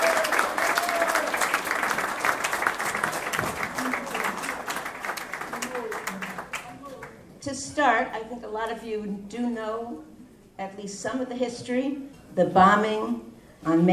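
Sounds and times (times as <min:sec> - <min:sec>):
audience applause: 0:00.0 - 0:07.2
speech: 0:07.5 - 0:13.9.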